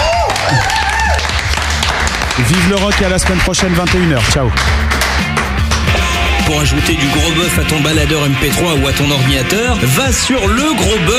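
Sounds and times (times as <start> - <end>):
audience applause: 0.0 - 6.2
speech: 2.4 - 5.4, 6.5 - 11.1.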